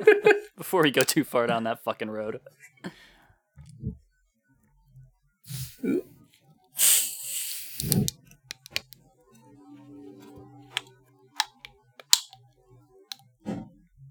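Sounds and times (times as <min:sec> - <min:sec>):
laughter: 0:00.0 - 0:00.6
speech: 0:00.7 - 0:03.0, 0:05.5 - 0:06.1, 0:07.8 - 0:08.1
drink cans cracked open with pops and fizzing: 0:00.8 - 0:01.2, 0:07.7 - 0:09.0, 0:10.7 - 0:12.4
breathing: 0:02.8 - 0:03.5.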